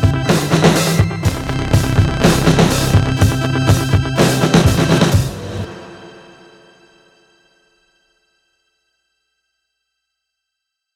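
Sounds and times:
stutter filter effect: 1.1 - 5.2.

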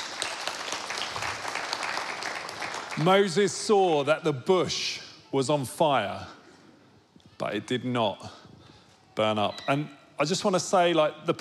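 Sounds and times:
round of applause: 0.0 - 3.4
speech: 3.0 - 6.4, 7.4 - 8.4, 9.2 - 11.3.

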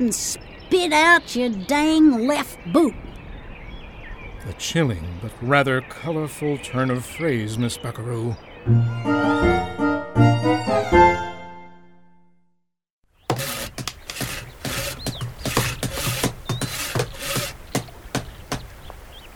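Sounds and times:
speech: 0.0 - 3.0, 4.4 - 9.3
sustained musical chords: 8.7 - 12.5
rasping strokes of sawing: 13.3 - 18.7.

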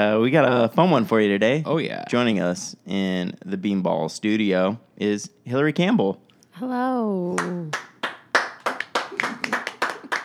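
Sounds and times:
speech: 0.0 - 7.9
applause sound effect: 8.0 - 10.2.

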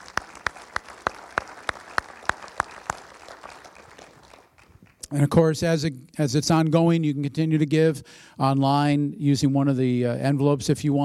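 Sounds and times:
audience applauding: 0.0 - 5.1
speech: 5.1 - 11.0.

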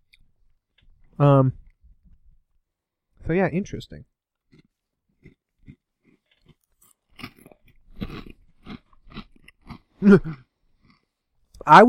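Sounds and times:
speech: 1.2 - 1.6, 3.3 - 4.1, 10.0 - 10.5, 11.6 - 11.8
potato chips crunched while eating: 4.5 - 10.0.

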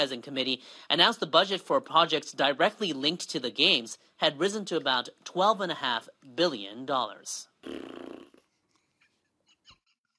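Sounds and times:
speech: 0.0 - 8.0
mouth-made fart imitation: 7.6 - 8.5.

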